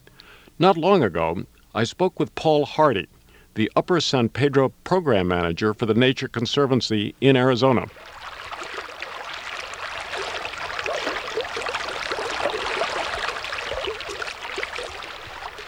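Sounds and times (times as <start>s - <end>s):
speech: 0.6s - 8.1s
river water flowing and burbling over stones: 7.9s - 15.6s.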